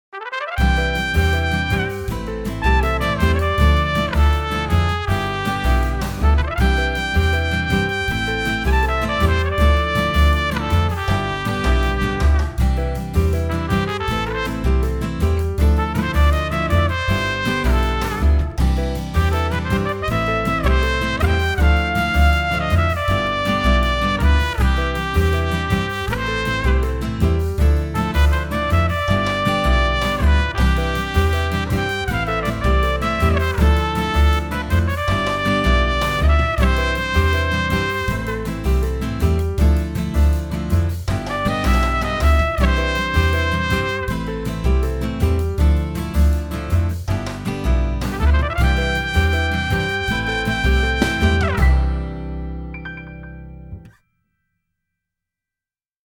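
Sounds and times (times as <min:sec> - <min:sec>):
easy listening music: 0:00.1 - 0:53.9.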